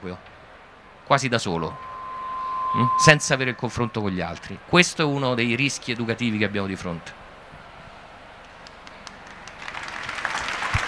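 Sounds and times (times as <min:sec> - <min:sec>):
speech: 0:00.0 - 0:00.4, 0:01.1 - 0:01.9, 0:02.7 - 0:07.2
audience applause: 0:08.7 - 0:10.8.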